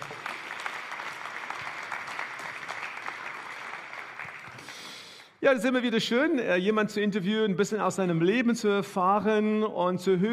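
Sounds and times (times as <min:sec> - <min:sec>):
audience applause: 0:00.0 - 0:05.1
speech: 0:05.4 - 0:10.3.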